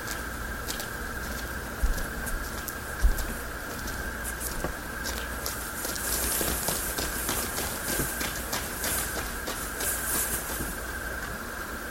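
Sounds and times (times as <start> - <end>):
footsteps running away on gravel: 0.1 - 10.8
hiss: 2.6 - 11.8.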